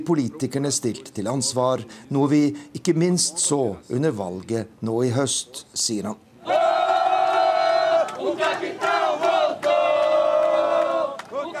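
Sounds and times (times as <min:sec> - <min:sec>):
speech: 0:00.0 - 0:06.6
crowd of Jair Bolsonaro supporters cheering after election win: 0:06.4 - 0:11.5.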